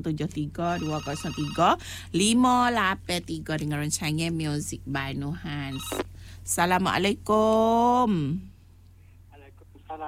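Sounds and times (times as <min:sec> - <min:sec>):
speech: 0:00.0 - 0:08.5
telephone ringing for an incoming call: 0:00.7 - 0:01.8.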